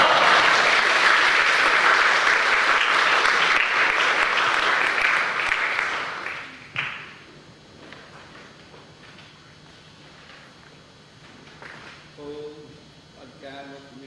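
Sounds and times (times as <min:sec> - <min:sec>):
audience applause welcoming a speaker: 0:00.0 - 0:07.0.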